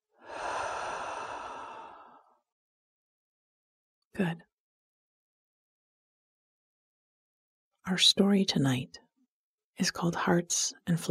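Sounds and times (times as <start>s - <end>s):
slow breath drawn in and sighed out through the mouth: 0.2s - 2.4s
speech: 4.2s - 4.5s, 7.9s - 9.0s, 9.8s - 11.0s.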